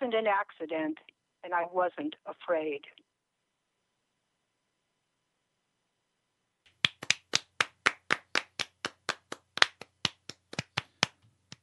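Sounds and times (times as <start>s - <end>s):
speech: 0.1s - 3.0s
clapping: 6.7s - 11.6s.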